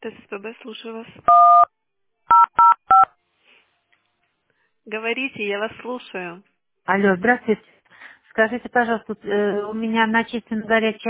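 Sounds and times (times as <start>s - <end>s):
speech: 0.0s - 2.7s, 4.9s - 7.8s, 8.4s - 11.0s
telephone keypad DTMF dialing tones: 1.3s - 1.7s, 2.3s - 3.1s.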